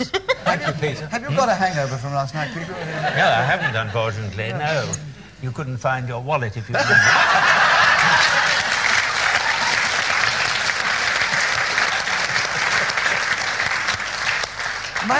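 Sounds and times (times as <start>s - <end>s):
laughter: 0.0s - 4.9s, 6.7s - 13.0s
speech: 0.0s - 7.6s
audience applause: 7.3s - 15.1s.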